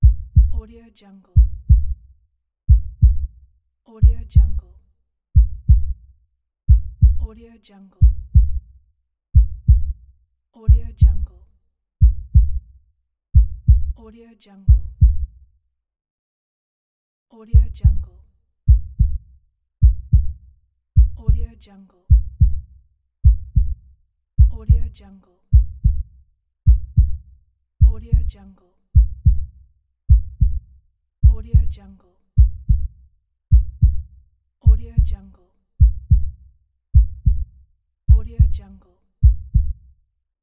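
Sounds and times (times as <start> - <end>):
heartbeat: 0.0 - 0.7, 1.4 - 2.1, 2.7 - 3.4, 4.0 - 4.7, 5.4 - 6.0, 6.7 - 7.3, 8.0 - 8.7, 9.4 - 10.0, 10.7 - 11.4, 12.0 - 12.7, 13.4 - 14.0, 14.7 - 15.4, 17.6 - 19.2, 19.8 - 20.4, 21.0 - 21.5, 22.1 - 23.8, 24.4 - 24.9, 25.5 - 26.1, 26.7 - 27.2, 27.8 - 28.4, 29.0 - 29.5, 30.1 - 31.8, 32.4 - 35.2, 35.8 - 36.4, 37.0 - 37.5, 38.1 - 38.6, 39.2 - 39.8.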